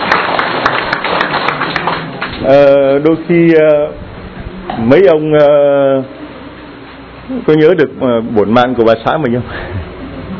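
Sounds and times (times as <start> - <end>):
big round of applause: 0.0 - 2.4
speech: 2.4 - 4.0, 4.8 - 6.2, 7.3 - 10.0.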